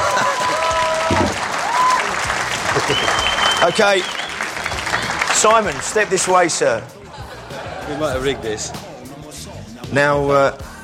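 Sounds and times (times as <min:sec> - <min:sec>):
laughter: 0:00.0 - 0:01.2, 0:02.3 - 0:09.5
audience applause: 0:00.0 - 0:07.0
speech: 0:03.6 - 0:04.2, 0:05.4 - 0:07.0, 0:07.9 - 0:08.9, 0:09.9 - 0:10.7.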